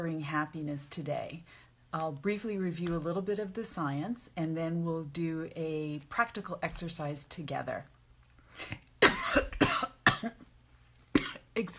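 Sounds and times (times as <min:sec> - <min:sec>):
speech: 0:00.0 - 0:07.9, 0:08.6 - 0:09.5, 0:11.6 - 0:11.7
harsh coughing from something caught in throat: 0:08.6 - 0:10.4, 0:11.1 - 0:11.5.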